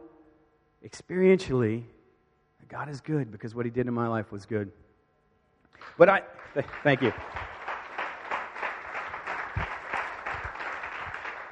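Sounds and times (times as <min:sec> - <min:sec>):
speech: 0:00.8 - 0:02.0, 0:02.7 - 0:04.8, 0:05.7 - 0:07.5
audience clapping: 0:05.7 - 0:11.5.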